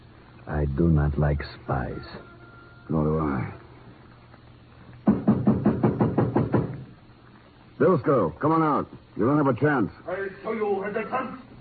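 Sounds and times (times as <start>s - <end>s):
speech: 0.5s - 2.3s, 2.9s - 3.6s, 7.8s - 11.4s
firm knocks on a wooden door: 5.0s - 6.9s.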